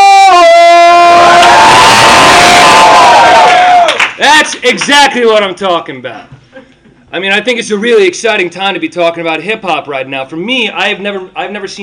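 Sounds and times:
high-pitched whoop: 0.0s - 4.0s
crowd cheering: 0.0s - 4.2s
speech: 4.5s - 6.4s, 7.1s - 11.8s.

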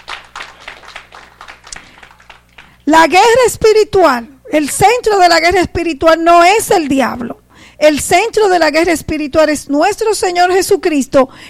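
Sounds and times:
church congregation clapping in a steady rhythmic beat: 0.0s - 2.9s
speech: 2.9s - 11.4s.

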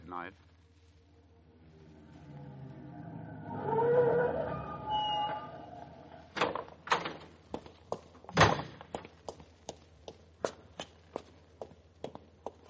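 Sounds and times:
door opening and closing: 2.4s - 7.3s.

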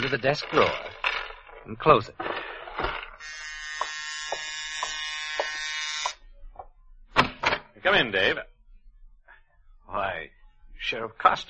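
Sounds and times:
speech: 0.0s - 0.9s, 1.6s - 2.9s, 7.9s - 8.5s, 9.9s - 11.4s
buzzing doorbell: 3.2s - 6.2s
soft regular taps: 3.8s - 6.8s.

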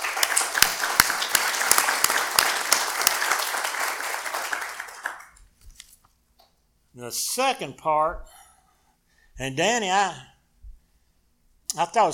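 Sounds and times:
audience applause: 0.0s - 5.4s
speech: 7.0s - 8.4s, 9.4s - 10.3s, 11.7s - 12.1s.

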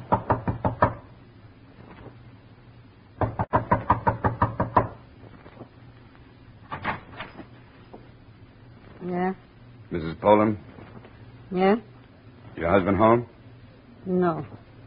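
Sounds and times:
knocking on a door: 0.0s - 1.1s, 3.2s - 5.0s
speech: 10.0s - 10.7s, 11.5s - 11.9s, 12.6s - 13.3s, 14.1s - 14.6s.

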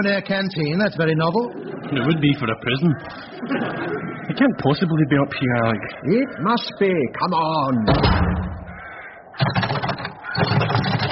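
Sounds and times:
speech: 0.0s - 8.5s
laughter: 1.2s - 6.3s
jammed door being tried: 9.4s - 11.1s.

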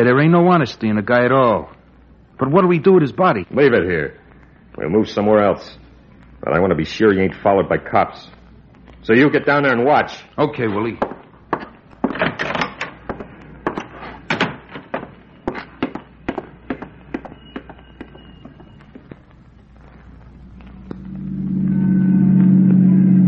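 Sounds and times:
speech: 0.0s - 1.8s, 2.4s - 4.2s, 4.8s - 5.8s, 6.4s - 8.4s, 9.0s - 11.1s
knocks and clatters: 11.0s - 18.2s
car engine drone while tailing another car: 20.1s - 23.2s.

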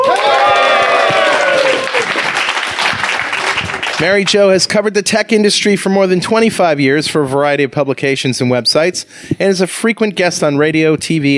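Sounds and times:
live audience in Sunnyvale applauding to welcome a guest: 0.0s - 4.4s
speech: 4.0s - 11.3s.

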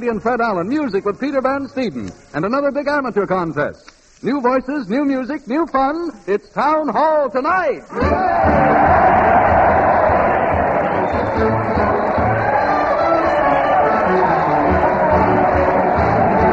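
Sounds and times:
speech: 0.0s - 9.9s
studio audience crowd cheering and shouting: 7.9s - 16.5s
whoops from a crowd: 8.0s - 16.5s.

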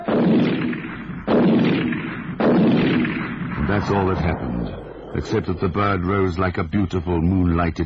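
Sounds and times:
shotgun blasts: 0.1s - 4.9s
speech: 3.8s - 7.8s.

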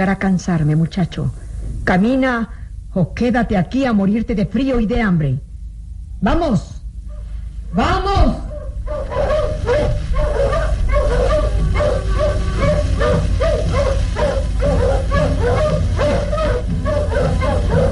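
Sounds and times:
speech: 0.0s - 5.5s, 6.2s - 6.8s, 7.7s - 8.4s
low steady rumble: 0.0s - 17.9s
pack of wolves barking and whimpering: 8.4s - 17.9s.

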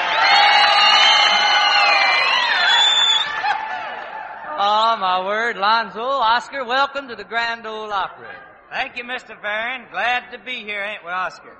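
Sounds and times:
audience at the Grand Ole Opry cheering and whooping: 0.0s - 4.6s
speech: 5.2s - 11.5s.

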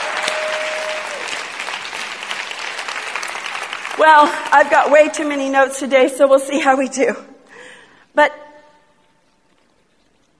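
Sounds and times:
audience clapping: 0.0s - 5.2s
speech: 4.0s - 7.3s, 8.2s - 8.4s.

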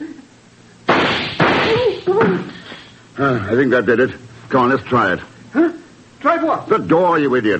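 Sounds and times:
gunshots fired at a door lock: 0.9s - 1.9s
speech: 3.2s - 7.5s.

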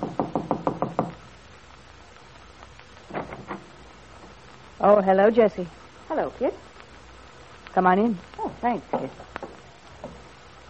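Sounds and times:
knocking on the door of Bungalow B: 0.0s - 1.2s
speech: 4.8s - 6.7s, 7.8s - 9.3s.

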